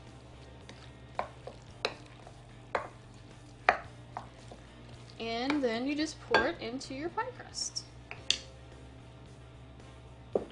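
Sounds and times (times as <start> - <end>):
fork tossing egg yolks around: 0.7 - 5.7
speech: 5.2 - 7.8.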